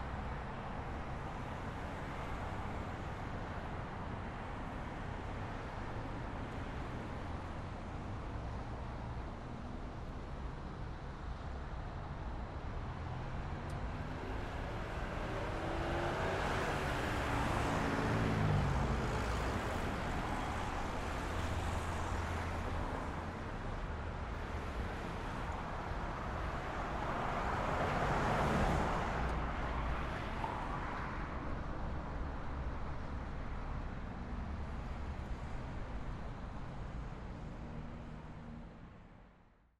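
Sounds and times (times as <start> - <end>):
traffic at a traffic light: 0.0 - 39.7.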